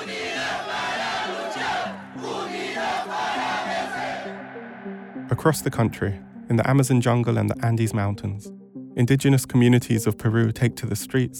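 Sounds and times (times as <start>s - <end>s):
large crowd of protesters chanting in unison: 0.0s - 5.2s
speech: 5.3s - 11.3s.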